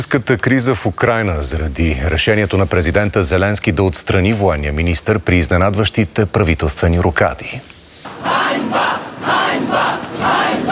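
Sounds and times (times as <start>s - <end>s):
speech: 0.1s - 10.7s
protest crowd shouting shame: 8.0s - 10.7s.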